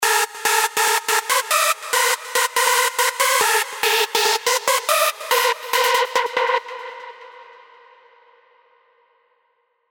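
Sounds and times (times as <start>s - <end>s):
old school hard techno music: 0.0s - 7.3s.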